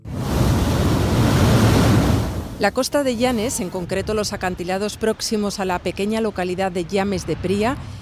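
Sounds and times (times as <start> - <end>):
sea water roaring through coastal blowholes: 0.0 - 4.0
speech: 2.6 - 8.0.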